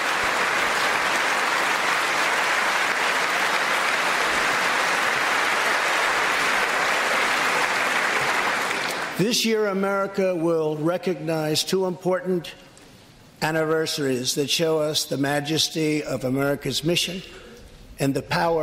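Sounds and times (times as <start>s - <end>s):
applause from a large audience: 0.0s - 9.2s
speech: 9.2s - 12.7s, 13.4s - 18.6s.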